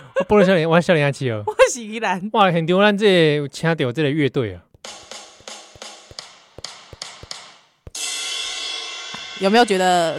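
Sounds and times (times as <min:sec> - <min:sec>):
speech: 0:00.2 - 0:05.0, 0:09.4 - 0:10.1
fingers tapping on a mobile phone: 0:04.8 - 0:07.9.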